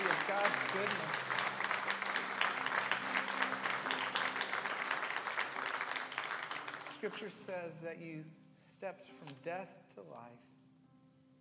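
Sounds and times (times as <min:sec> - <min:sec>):
audience clapping: 0:00.0 - 0:07.6
speech: 0:00.3 - 0:01.4, 0:07.0 - 0:10.5.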